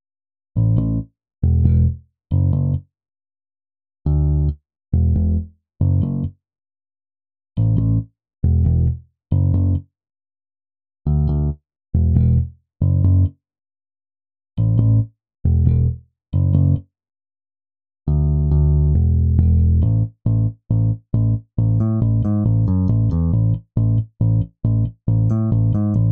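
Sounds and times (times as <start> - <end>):
bass: 0.6 - 2.9, 4.1 - 6.4, 7.6 - 9.9, 11.1 - 13.4, 14.6 - 16.9, 18.1 - 26.1.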